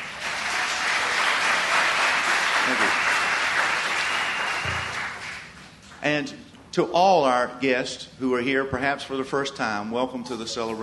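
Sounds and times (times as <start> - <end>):
audience clapping: 0.0 - 5.6
speech: 6.0 - 10.8.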